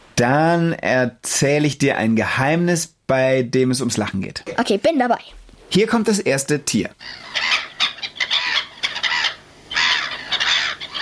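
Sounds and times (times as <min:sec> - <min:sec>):
speech: 0:00.2 - 0:07.5
black-headed gulls calling: 0:07.0 - 0:11.0.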